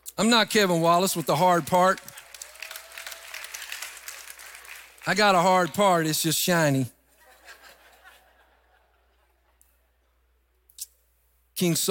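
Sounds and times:
speech: 0.2s - 2.1s, 5.0s - 7.0s, 11.6s - 11.8s
audience clapping: 0.6s - 6.2s
laughter: 7.2s - 9.9s.

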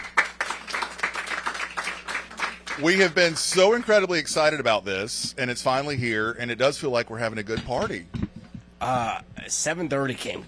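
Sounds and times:
audience applause: 0.0s - 3.9s
speech: 2.8s - 8.2s, 8.8s - 10.4s.

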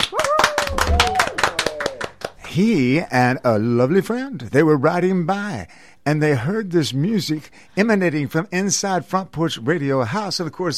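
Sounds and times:
applause: 0.0s - 2.5s
speech: 2.6s - 10.7s.

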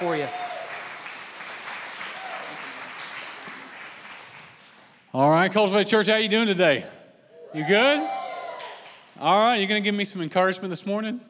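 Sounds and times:
church congregation clapping to welcome a guest speaker: 0.0s - 5.2s, 8.3s - 9.2s
speech: 5.2s - 8.2s, 9.2s - 11.2s.

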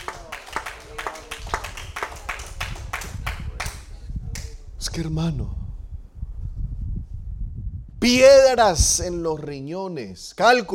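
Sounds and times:
audience applause: 0.0s - 3.9s
murmur of voices: 0.0s - 4.6s
speech: 5.0s - 5.6s, 8.1s - 10.7s.

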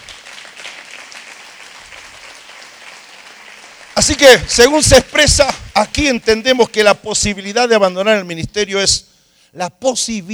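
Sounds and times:
audience applause: 0.0s - 6.0s
speech: 4.0s - 10.3s.

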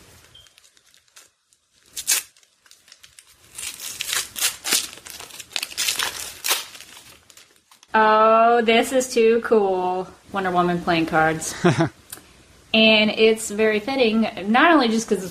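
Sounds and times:
crinkling and tearing of wrapping on a small package: 0.0s - 7.9s
speech: 7.9s - 12.0s, 12.7s - 15.2s.

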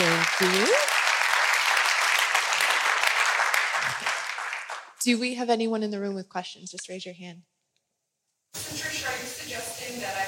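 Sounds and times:
audience applause: 0.0s - 5.0s
speech: 5.0s - 7.5s.

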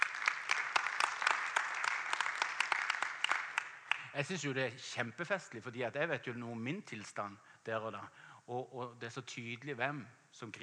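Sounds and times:
audience applause: 0.0s - 4.1s
speech: 4.2s - 10.6s.

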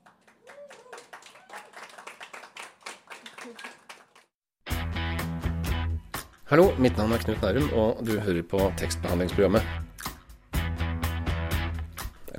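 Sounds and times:
audience applause: 0.0s - 4.3s
loud music with strong, steady bass: 4.7s - 6.2s, 10.6s - 12.1s
speech: 6.5s - 9.8s.

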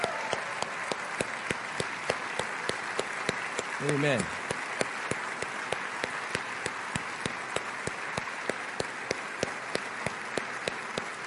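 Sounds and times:
church congregation applauding veterans: 0.0s - 11.2s
speech: 3.8s - 4.4s.

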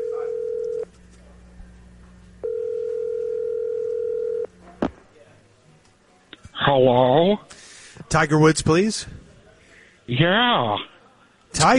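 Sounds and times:
telephone line ringing: 0.0s - 0.9s, 2.4s - 4.5s
speech: 6.7s - 9.2s, 10.1s - 10.9s, 11.5s - 11.7s.

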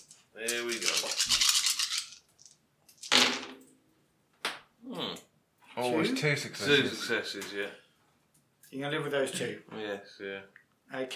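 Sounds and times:
dice clattering across a hard surface: 0.0s - 3.6s
speech: 0.4s - 1.5s, 5.9s - 7.8s, 8.7s - 11.1s.

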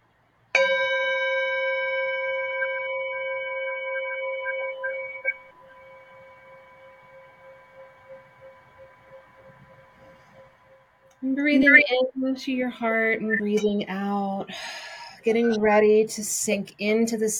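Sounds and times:
meditation bell ringing: 0.6s - 11.8s
speech: 11.2s - 17.3s.

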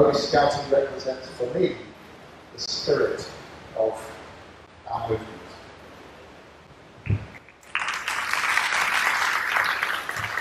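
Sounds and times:
speech: 0.0s - 1.9s, 2.5s - 4.2s, 4.9s - 5.4s
audience applause: 7.6s - 10.4s.

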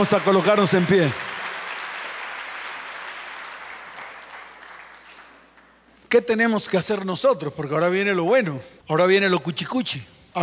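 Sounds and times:
speech: 0.0s - 1.4s, 6.1s - 10.4s
audience applauding: 0.0s - 5.8s.

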